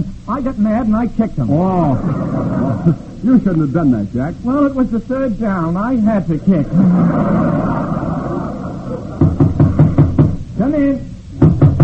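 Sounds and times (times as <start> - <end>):
speech: 0.0 - 7.9, 10.7 - 11.1
low hiss and rumble: 0.0 - 11.8
laughter: 1.7 - 3.2, 6.3 - 9.6
knocking on a door: 9.2 - 10.4, 11.4 - 11.8.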